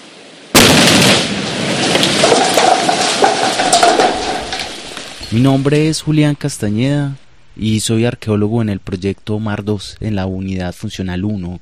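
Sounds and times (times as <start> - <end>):
explosive rock blasting detonation: 0.5 - 5.9
speech: 5.3 - 11.5.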